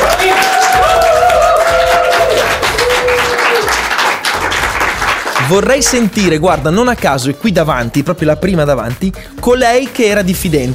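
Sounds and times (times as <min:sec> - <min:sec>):
live audience applause: 0:00.0 - 0:06.0
speech: 0:05.5 - 0:10.7.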